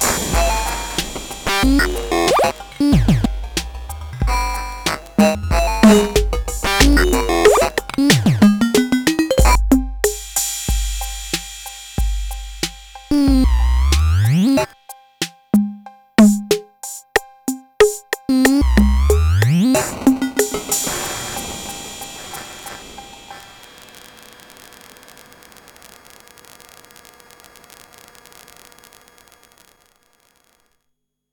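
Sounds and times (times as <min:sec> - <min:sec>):
TR 808 drum machine through HSS2020 effects: 0:00.0 - 0:14.8, 0:15.5 - 0:25.2.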